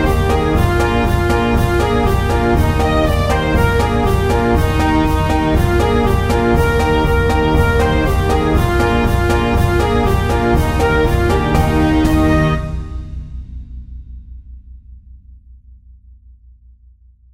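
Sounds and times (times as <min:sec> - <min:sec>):
cancan music: 0:00.0 - 0:13.1.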